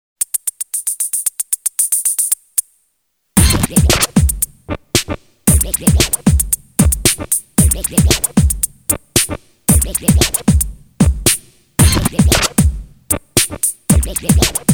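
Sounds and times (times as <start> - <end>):
gritty pop music: 3.4 - 14.7.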